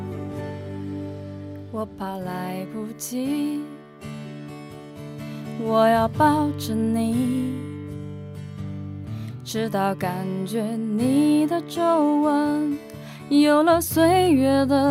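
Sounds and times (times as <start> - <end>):
Chinese woman singing a song: 1.6 - 3.8, 5.5 - 7.8, 9.4 - 14.8.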